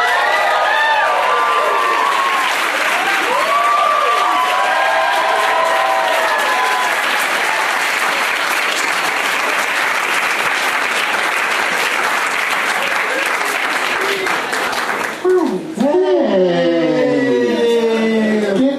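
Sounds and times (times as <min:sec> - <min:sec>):
audience whooping: 0:00.0 - 0:08.8, 0:12.6 - 0:14.6, 0:15.2 - 0:18.6
audience clapping to welcome guests onto a stage: 0:00.0 - 0:16.0.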